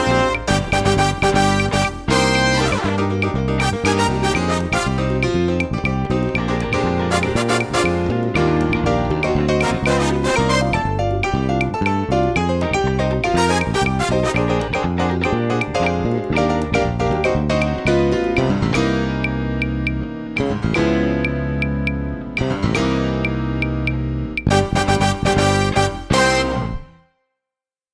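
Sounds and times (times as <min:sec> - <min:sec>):
Latin backing music: 0:00.0 - 0:27.0.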